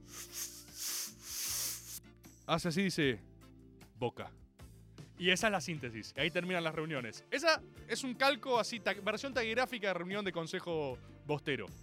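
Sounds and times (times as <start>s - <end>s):
voice imitating a long slurp of mate: 0.0s - 2.0s
speech: 2.5s - 3.3s, 4.0s - 4.4s, 5.2s - 11.8s.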